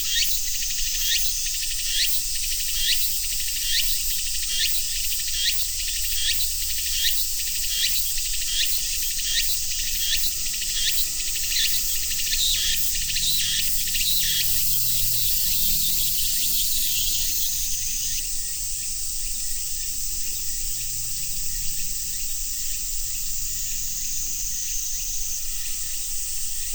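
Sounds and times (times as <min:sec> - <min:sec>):
cicada drone: 0:00.0 - 0:26.7.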